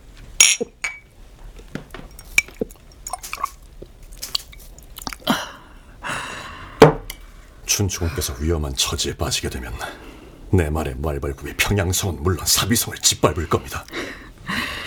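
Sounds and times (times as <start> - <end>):
drinking cups clinking in a toast: 0.4 - 1.1, 1.8 - 5.3
wet taps and rustles: 1.4 - 5.3
speech: 7.8 - 14.2.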